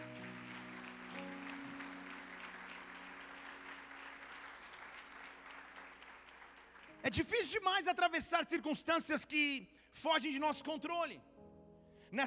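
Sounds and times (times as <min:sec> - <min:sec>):
low sustained musical tones: 0:00.0 - 0:05.0
crowd applauding: 0:00.0 - 0:07.6
speech: 0:07.0 - 0:11.3.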